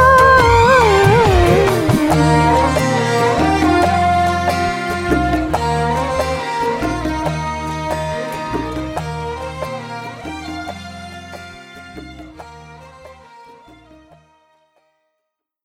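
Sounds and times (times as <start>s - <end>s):
person singing: 0.0s - 9.5s.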